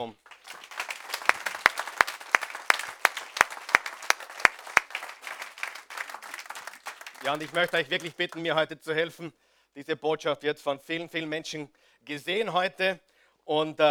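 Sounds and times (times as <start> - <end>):
speech: 0.0 - 0.6, 7.2 - 13.8
audience applause: 0.0 - 8.6.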